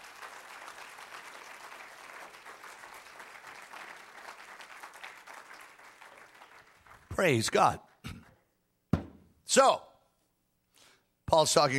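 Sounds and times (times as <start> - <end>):
audience clapping hands: 0.0 - 8.4
speech: 7.2 - 7.8, 9.5 - 9.9, 11.4 - 11.7.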